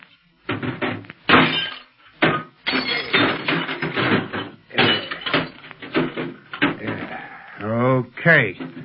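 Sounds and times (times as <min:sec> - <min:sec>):
shortwave radio set being smashed: 0:00.5 - 0:07.2, 0:08.5 - 0:08.8
speech: 0:08.2 - 0:08.8.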